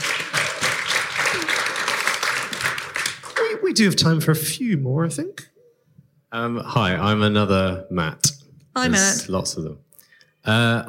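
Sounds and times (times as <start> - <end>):
audience applause: 0.0 - 3.8
speech: 3.7 - 5.5, 6.3 - 9.8, 10.4 - 10.8.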